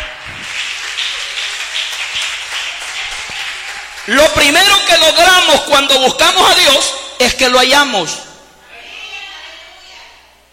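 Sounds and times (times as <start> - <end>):
audience applauding: 0.0 - 5.3
speech: 4.1 - 8.3.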